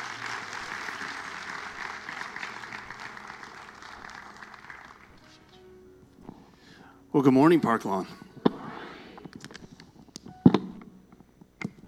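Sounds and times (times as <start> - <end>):
audience applause welcoming a guest pastor from Eastbrook Church: 0.0 - 5.6
speech: 7.2 - 8.2.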